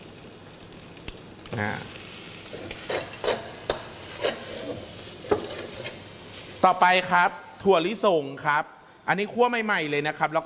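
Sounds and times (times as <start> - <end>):
mildly salty naturally processed dried shrimp sizzling in a pan: 0.0 - 7.6
speech: 1.5 - 2.9, 6.6 - 10.4
spatula scraping: 2.5 - 6.5.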